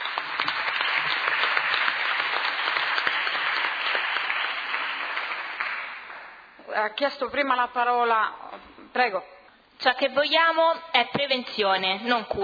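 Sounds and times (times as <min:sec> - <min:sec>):
audience applause: 0:00.0 - 0:06.4
speech: 0:06.8 - 0:12.4.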